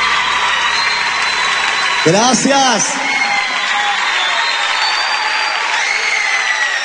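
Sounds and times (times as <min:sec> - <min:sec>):
audience applause: 0:00.0 - 0:06.8
speech: 0:02.0 - 0:03.2.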